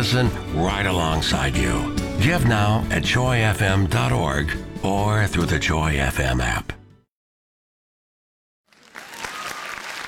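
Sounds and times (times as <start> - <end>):
speech: 0.0 - 6.8
audience applause: 8.7 - 10.0.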